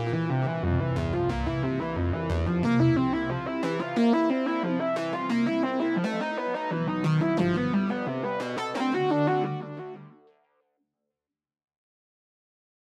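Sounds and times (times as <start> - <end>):
modular synth: 0.0 - 10.0.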